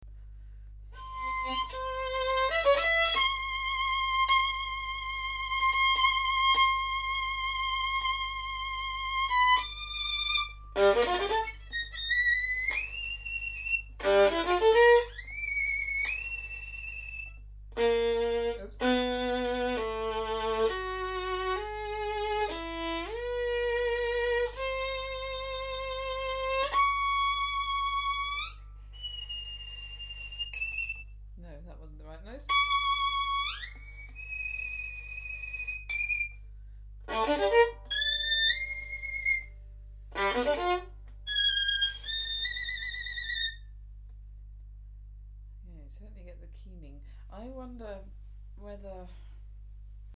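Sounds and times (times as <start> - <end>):
violin: 0.9 - 31.1, 32.4 - 43.8.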